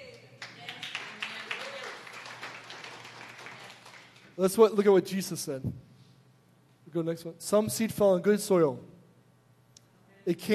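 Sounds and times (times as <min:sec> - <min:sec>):
audience clapping: 0:00.4 - 0:04.6
speech: 0:04.4 - 0:05.9, 0:06.9 - 0:08.9, 0:10.3 - 0:10.5.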